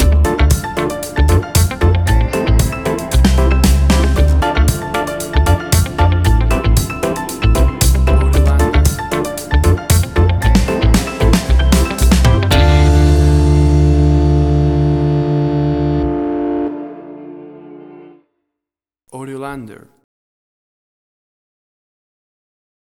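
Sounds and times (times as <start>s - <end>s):
Cuban reggae music: 0.0s - 18.1s.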